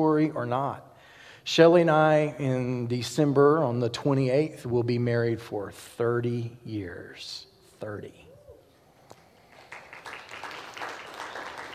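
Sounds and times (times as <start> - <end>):
speech: 0.0 - 8.2
audience clapping: 9.4 - 11.7.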